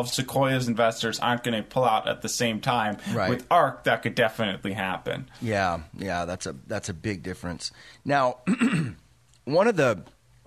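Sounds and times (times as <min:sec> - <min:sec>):
speech: 0:00.0 - 0:10.2
throat clearing: 0:08.4 - 0:09.1.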